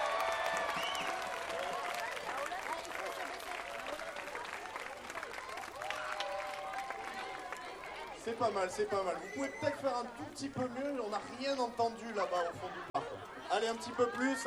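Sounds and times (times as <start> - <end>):
crowd applauding and cheering: 0.0 - 8.1
speech: 8.3 - 12.9, 13.6 - 14.4.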